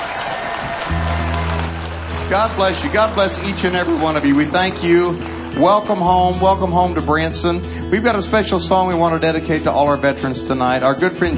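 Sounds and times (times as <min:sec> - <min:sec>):
large audience applause for veterans: 0:00.0 - 0:07.2
speech: 0:02.3 - 0:11.3.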